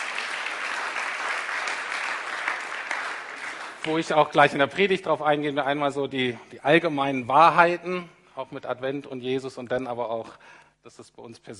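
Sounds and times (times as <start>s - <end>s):
audience applause: 0.0s - 4.2s
speech: 3.8s - 11.5s.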